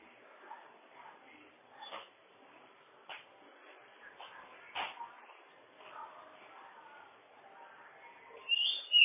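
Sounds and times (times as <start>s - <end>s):
bird whistling song: 8.4s - 9.0s.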